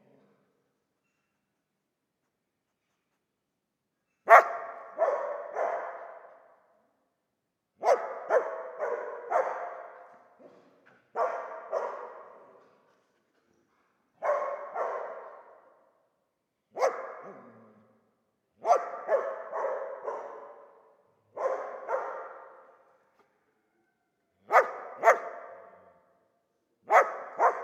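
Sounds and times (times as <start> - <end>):
dog barking with reverberating tail: 4.2 - 6.6, 7.8 - 12.6, 14.2 - 15.8, 16.7 - 17.8, 18.6 - 22.9, 24.5 - 26.1, 26.9 - 27.6.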